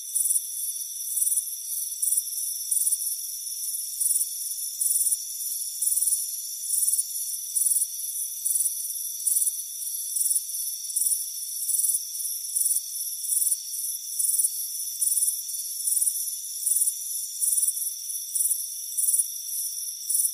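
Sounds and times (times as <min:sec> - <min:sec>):
cricket chirps: 0:00.0 - 0:20.3.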